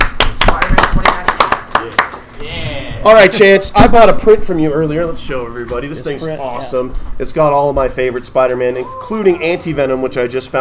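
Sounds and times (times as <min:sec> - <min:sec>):
small group clapping for a guest called up on stage: 0:00.0 - 0:02.2
speech: 0:03.0 - 0:10.6.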